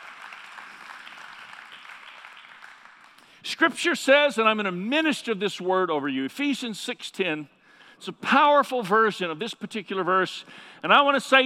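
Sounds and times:
audience clapping: 0:00.0 - 0:03.4
speech: 0:03.4 - 0:11.4.

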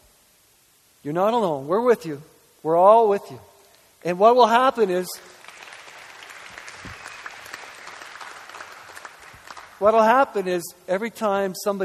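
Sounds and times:
speech: 0:01.0 - 0:05.4, 0:09.8 - 0:11.8
congregation cheering and applauding: 0:05.4 - 0:09.8.

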